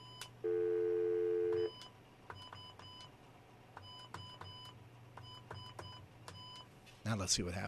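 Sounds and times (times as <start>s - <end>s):
phone tone: 0.0s - 1.8s
telephone keypad beeps dialing: 1.3s - 3.1s, 3.8s - 6.6s
speech: 7.1s - 7.6s.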